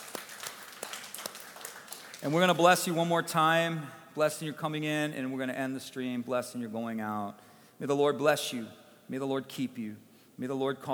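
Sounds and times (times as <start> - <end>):
audience clapping: 0.0 - 2.6
speech: 2.2 - 10.9.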